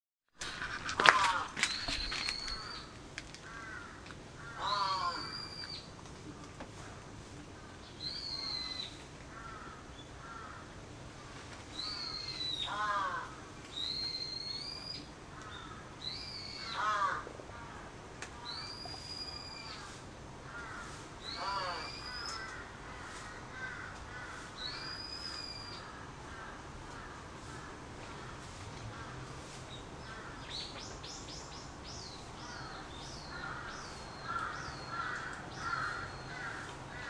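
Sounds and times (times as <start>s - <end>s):
background hiss: 0.4s - 37.0s
crow cawing: 1.0s - 1.6s, 3.4s - 5.5s, 9.3s - 10.8s, 11.9s - 13.5s, 15.3s - 17.9s, 19.7s - 25.0s, 25.6s - 29.2s, 30.0s - 30.5s, 32.4s - 37.0s.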